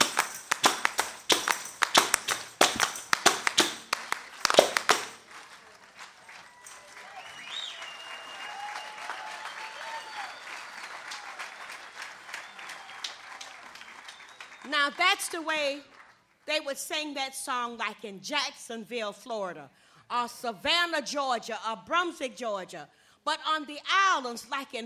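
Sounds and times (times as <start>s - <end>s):
audience clapping hands in rhythm: 0.0s - 16.4s
speech: 14.7s - 15.9s, 16.5s - 24.8s.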